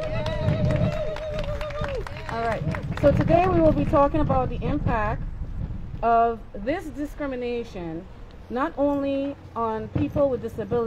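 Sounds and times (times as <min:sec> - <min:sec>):
scattered audience applause: 0:00.0 - 0:03.6
speech: 0:02.4 - 0:05.3, 0:06.0 - 0:10.8.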